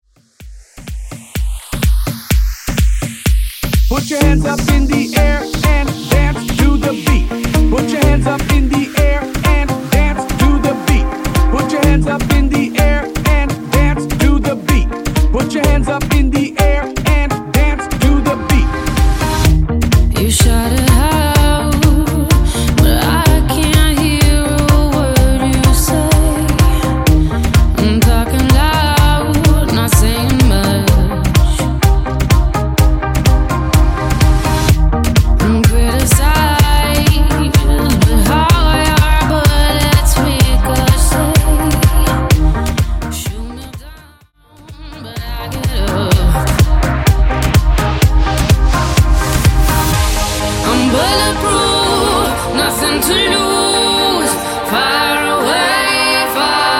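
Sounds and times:
clean throwback hype dance beat: 0:00.0 - 0:55.9.

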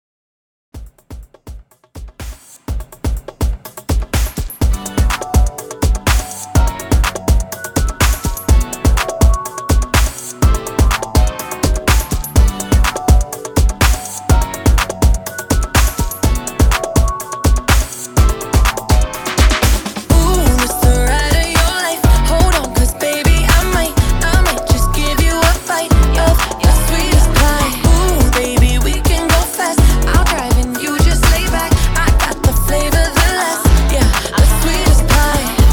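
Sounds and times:
electronic music beat at 124 BPM: 0:00.8 - 0:35.7.

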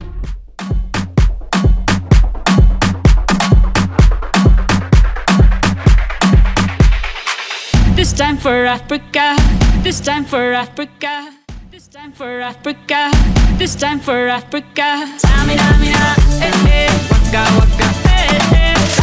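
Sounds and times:
Afrobeat music: 0:00.0 - 0:10.6, 0:12.9 - 0:19.0.

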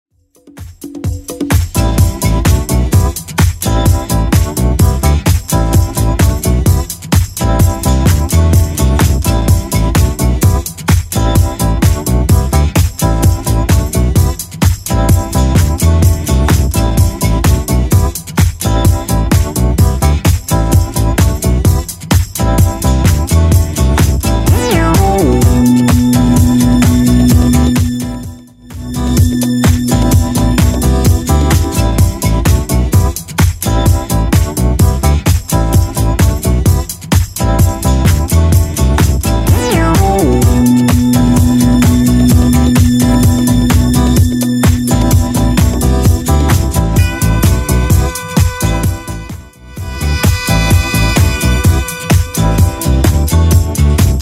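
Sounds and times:
70s style music track at 128 bpm: 0:00.2 - 0:54.1.

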